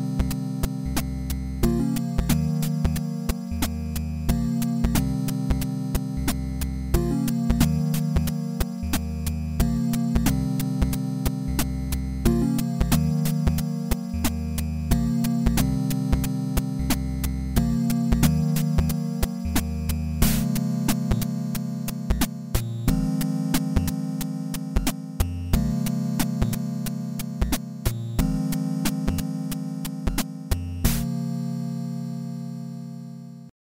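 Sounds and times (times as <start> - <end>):
8-bit music: 0.0 - 33.5.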